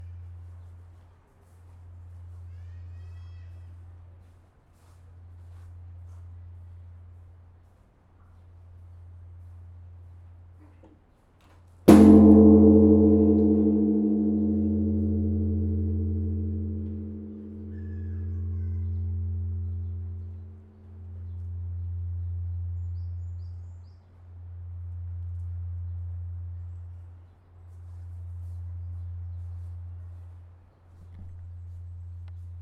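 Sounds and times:
gong in Zen Buddhism: 11.9 - 23.2.

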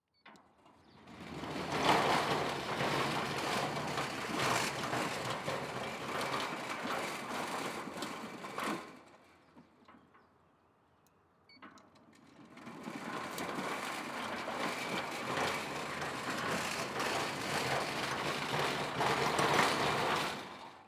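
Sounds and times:
sliding gate motor: 0.6 - 10.3, 11.7 - 20.8.

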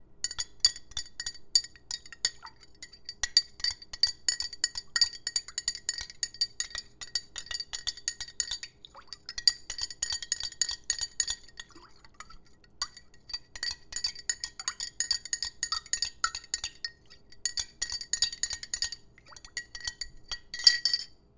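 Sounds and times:
water stirred in glass with metal spoon: 0.2 - 21.1.

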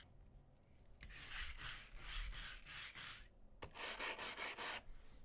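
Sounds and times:
brush scrubbing: 1.1 - 4.9.

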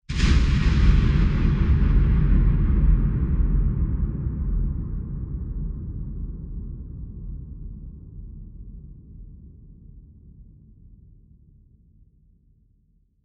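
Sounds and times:
huge thunderous explosion: 0.1 - 7.3.

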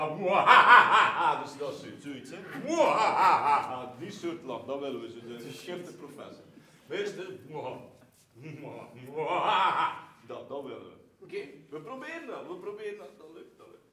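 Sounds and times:
evil laugh: 0.2 - 1.7, 2.4 - 3.9, 9.2 - 10.2.

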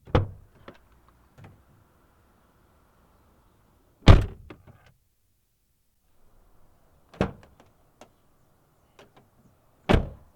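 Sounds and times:
car door: 9.9 - 10.2.

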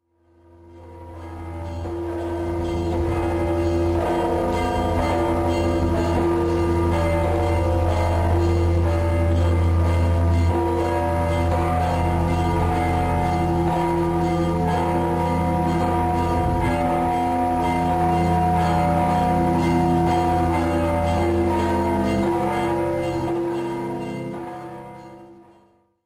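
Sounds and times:
Toom church bells ringing: 0.2 - 25.9.

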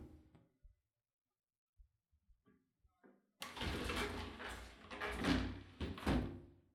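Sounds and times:
shower door opening and closing: 3.4 - 6.3.

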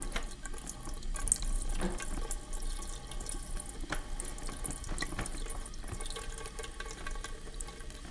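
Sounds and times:
faucet trickling: 0.0 - 8.0.

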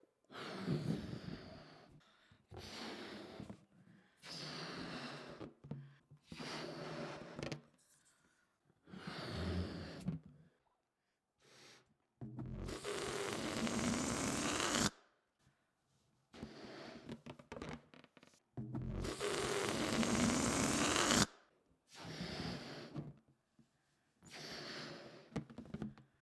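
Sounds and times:
balloon being inflated: 0.3 - 7.8, 8.8 - 10.3, 11.4 - 15.0, 18.8 - 23.2, 24.2 - 26.0.

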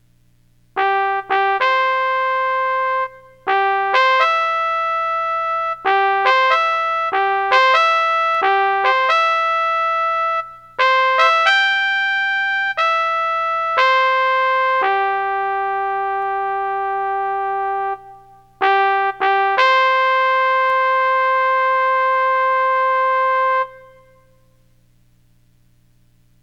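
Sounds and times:
trumpet bugle call: 0.8 - 24.5.

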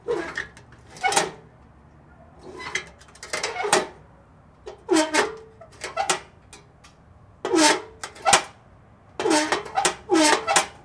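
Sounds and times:
old mailbox: 0.0 - 10.8.

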